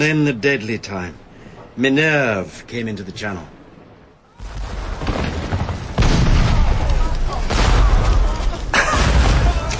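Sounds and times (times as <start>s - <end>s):
speech: 0.0s - 1.2s, 1.8s - 3.6s
massive cannon broadside explosion: 4.4s - 9.7s.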